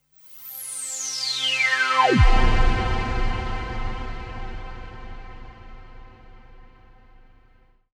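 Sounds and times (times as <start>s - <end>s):
Virus synth tone drop: 1.7s - 6.8s.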